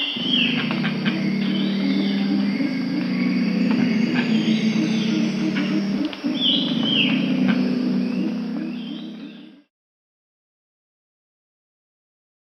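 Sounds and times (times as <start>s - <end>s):
Pale-winged Trumpeter Psophia leucoptera in Peru: 0.0s - 9.7s.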